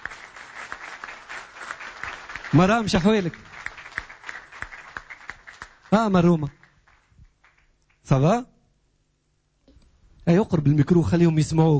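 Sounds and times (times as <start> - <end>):
faint audience applause at a memorial tribute: 0.0 - 7.7
speech: 2.5 - 3.5, 5.9 - 6.6, 8.1 - 8.5, 10.3 - 11.7.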